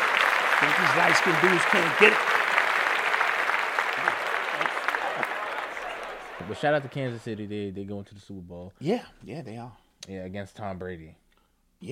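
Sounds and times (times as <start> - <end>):
applause sound effect of many hands clapping: 0.0 - 7.2
speech: 0.6 - 2.4, 6.5 - 11.2.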